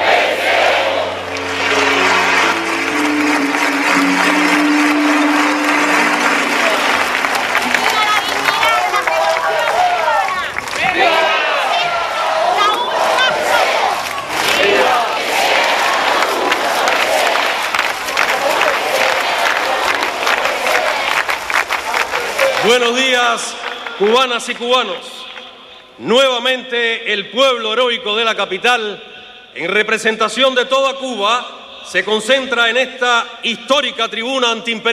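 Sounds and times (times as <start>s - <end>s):
crowd chanting: 0.0s - 22.8s
large rally crowd shouting and cheering: 0.0s - 25.9s
low steady tones: 0.8s - 10.1s
speech: 22.8s - 25.1s, 26.0s - 34.9s.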